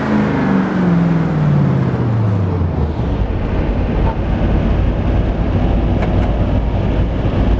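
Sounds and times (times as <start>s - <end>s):
engine throttle off: 0.2s - 7.5s.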